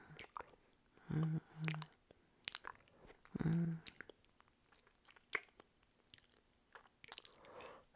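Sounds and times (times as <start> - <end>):
wet biting, slurping and chewing of a vampire feeding on a neck: 0.2 - 0.5, 1.6 - 7.5.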